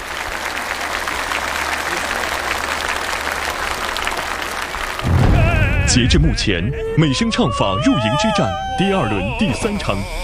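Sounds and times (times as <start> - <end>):
audience applause: 0.0 - 6.8
speech: 5.9 - 10.2.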